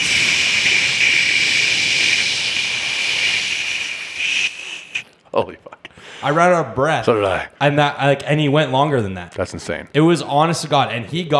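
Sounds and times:
voice imitating a long aerosol body spray hiss: 0:00.0 - 0:06.0
speech: 0:05.4 - 0:11.3.

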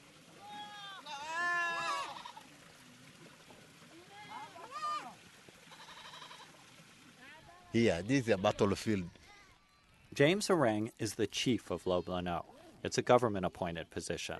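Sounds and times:
livestock bleating crowded around water trough: 0:00.5 - 0:02.5, 0:05.7 - 0:06.6
speech: 0:07.8 - 0:09.2, 0:10.2 - 0:14.3.

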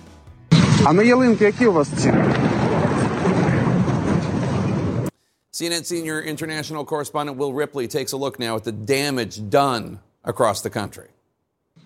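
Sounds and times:
Russian missile strike explosion in Kyiv: 0:00.5 - 0:05.1
speech: 0:00.8 - 0:02.6, 0:05.6 - 0:11.2.

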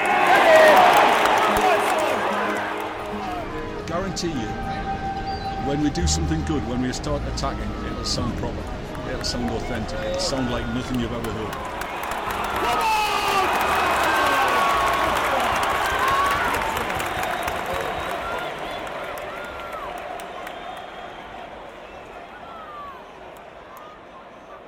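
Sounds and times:
football stadium crowd roaring: 0:00.0 - 0:03.8, 0:04.6 - 0:24.6
football stadium crowd chanting and singing: 0:00.0 - 0:11.9
speech: 0:04.2 - 0:04.7, 0:05.6 - 0:11.8.

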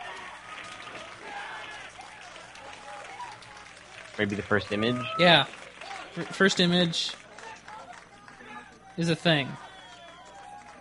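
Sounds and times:
crowd applauding: 0:00.0 - 0:10.7
speech: 0:04.2 - 0:07.2, 0:09.0 - 0:09.6.

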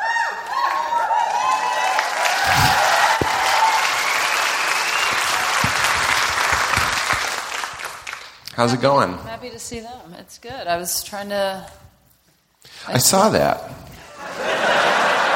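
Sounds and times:
audience applause: 0:00.3 - 0:08.4
speech: 0:08.6 - 0:11.8, 0:12.8 - 0:13.8
laughter: 0:14.0 - 0:15.3.

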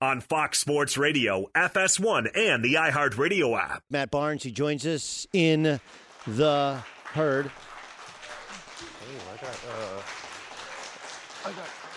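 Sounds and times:
speech: 0:00.0 - 0:07.7, 0:09.1 - 0:10.2, 0:11.4 - 0:11.8
studio audience standing ovation: 0:05.3 - 0:11.9.

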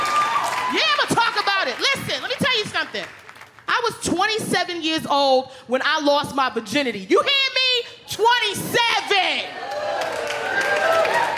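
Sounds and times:
audience clapping: 0:00.0 - 0:03.7, 0:09.5 - 0:11.3
speech: 0:03.8 - 0:07.5, 0:08.2 - 0:09.8.

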